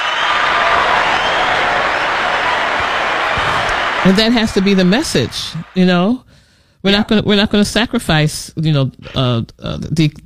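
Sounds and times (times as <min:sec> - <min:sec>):
hand clap sound effect: 0:00.0 - 0:05.8
speech: 0:04.0 - 0:10.2.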